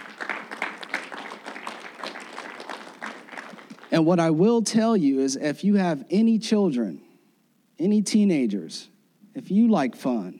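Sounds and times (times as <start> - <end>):
crowd applauding: 0.0 - 4.1
speech: 4.0 - 7.0, 7.8 - 10.3.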